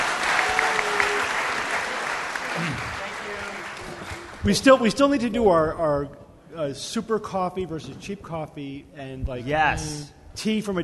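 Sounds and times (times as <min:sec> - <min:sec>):
audience applauding a guest: 0:00.0 - 0:04.5
speech: 0:04.4 - 0:10.8.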